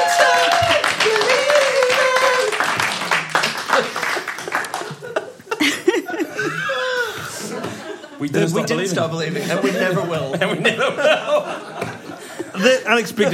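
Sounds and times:
audience applause: 0.0s - 5.3s
laughter: 0.0s - 13.3s
speech: 8.2s - 11.6s, 12.6s - 13.3s.

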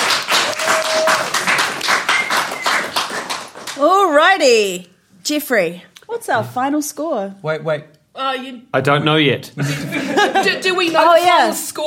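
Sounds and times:
audience applause: 0.0s - 3.8s
speech: 4.4s - 11.8s
laughter: 9.6s - 11.0s.

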